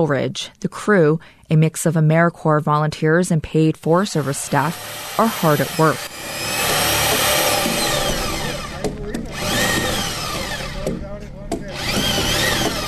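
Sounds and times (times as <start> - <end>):
speech: 0.0 - 6.7
power drill boring holes into logs: 4.1 - 12.8.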